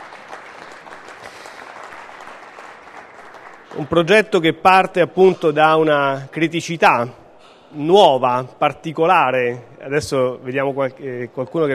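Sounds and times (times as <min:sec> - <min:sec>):
audience applause: 0:00.0 - 0:04.2
speech: 0:03.7 - 0:11.7.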